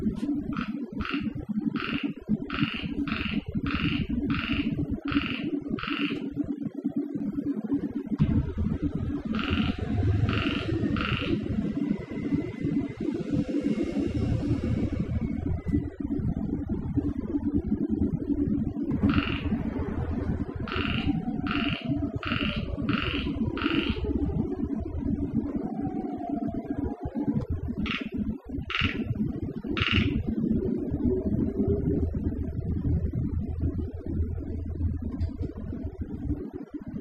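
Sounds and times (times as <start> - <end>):
loud low rumbling noise: 0.0 - 37.0
frog croaking: 0.4 - 6.6, 9.2 - 11.8, 18.9 - 24.5, 27.7 - 30.6.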